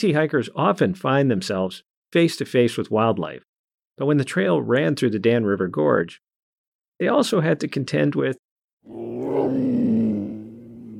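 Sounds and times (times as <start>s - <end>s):
speech: 0.0s - 6.3s, 7.0s - 9.8s
panther roaring: 8.9s - 10.9s.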